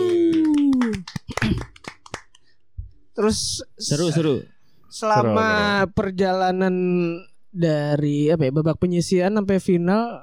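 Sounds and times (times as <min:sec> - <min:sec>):
a few people clapping: 0:00.0 - 0:02.5
speech: 0:03.2 - 0:10.2.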